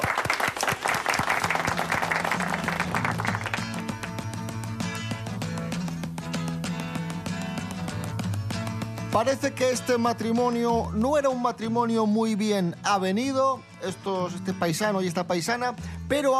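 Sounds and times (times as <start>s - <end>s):
applause: 0.0s - 6.0s
loud music with a regular beat: 1.6s - 11.0s
speech: 9.2s - 16.3s.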